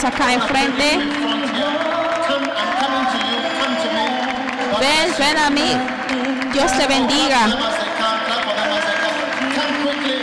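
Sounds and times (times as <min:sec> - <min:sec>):
speech: 0:00.0 - 0:03.4, 0:04.8 - 0:07.7
audience clapping: 0:00.0 - 0:10.2
crowd voices: 0:00.0 - 0:10.2.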